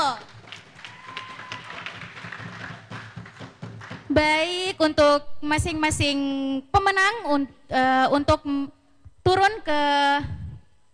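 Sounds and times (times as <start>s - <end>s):
audience applause: 0.0s - 4.2s
speech: 4.2s - 10.4s.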